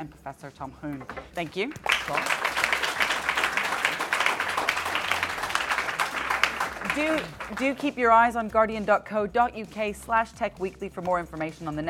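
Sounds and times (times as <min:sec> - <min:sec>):
speech: 0:00.0 - 0:02.8, 0:06.9 - 0:11.8
audience applause: 0:01.8 - 0:07.8.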